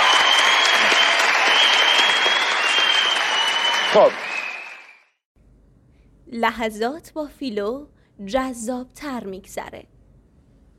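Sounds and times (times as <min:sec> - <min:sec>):
studio audience applauding: 0:00.0 - 0:05.1
speech: 0:03.9 - 0:04.3, 0:06.3 - 0:09.9.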